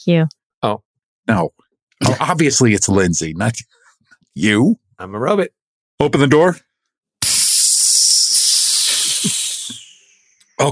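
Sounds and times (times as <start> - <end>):
speech: 0.0 - 3.8, 4.4 - 6.7
air hissing as compartment depressurizes: 7.2 - 10.4.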